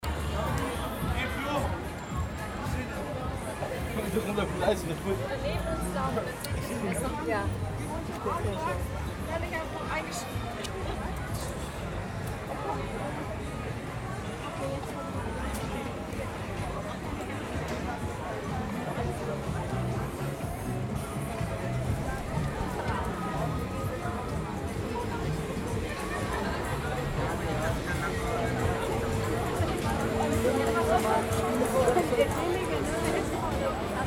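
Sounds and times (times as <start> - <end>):
murmur of crowd voices: 0.0 - 34.0.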